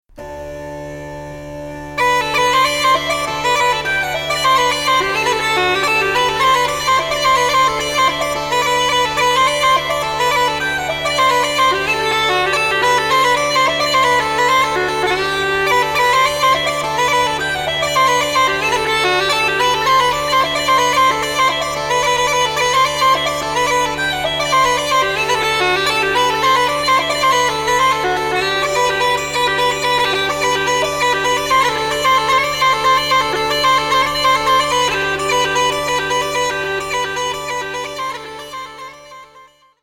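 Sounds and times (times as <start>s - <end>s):
Galician jota dance music: 0.2s - 39.5s.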